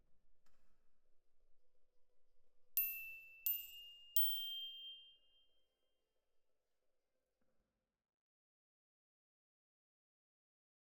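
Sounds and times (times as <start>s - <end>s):
glockenspiel: 2.8s - 5.5s.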